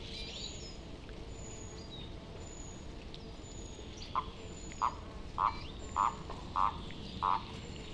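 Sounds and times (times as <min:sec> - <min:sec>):
common toad Bufo bufo calling: 0:04.2 - 0:07.4.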